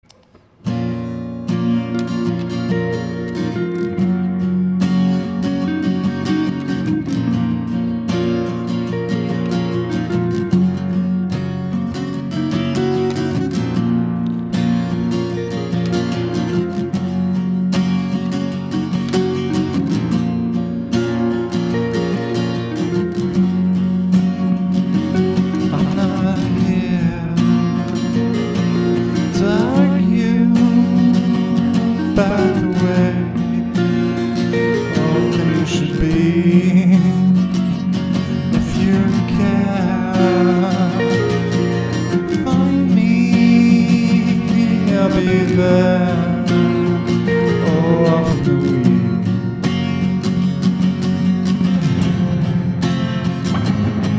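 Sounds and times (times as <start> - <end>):
acoustic music: 0.0 - 54.1.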